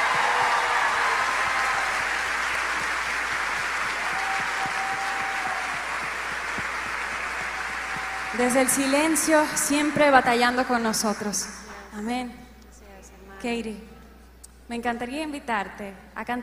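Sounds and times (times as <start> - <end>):
audience applause: 0.0 - 11.4
speech: 8.4 - 12.4, 13.4 - 13.9, 14.7 - 16.4.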